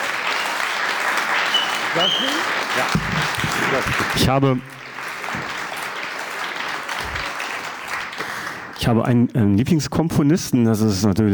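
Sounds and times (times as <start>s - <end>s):
audience applause: 0.0s - 8.8s
speech: 2.0s - 4.8s, 8.8s - 11.3s.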